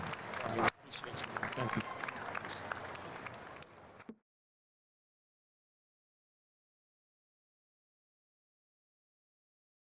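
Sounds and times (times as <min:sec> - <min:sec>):
audience applause: 0:00.0 - 0:04.1.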